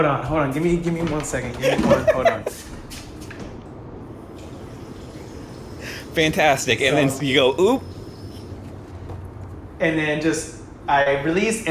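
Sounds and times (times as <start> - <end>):
speech: 0.0 - 2.8, 6.2 - 7.9, 9.8 - 11.7
laughter: 1.6 - 2.7
peeing sound effect, trickling water: 4.2 - 9.7.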